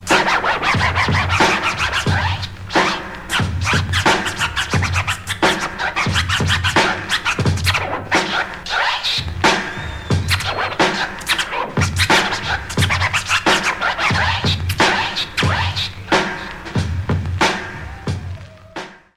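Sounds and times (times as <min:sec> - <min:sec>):
scratching: 0:00.1 - 0:18.5.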